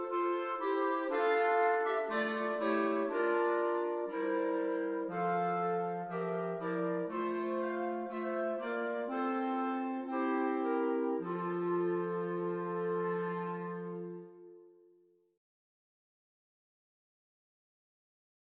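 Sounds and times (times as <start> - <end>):
quartet music: 0.0 - 14.7.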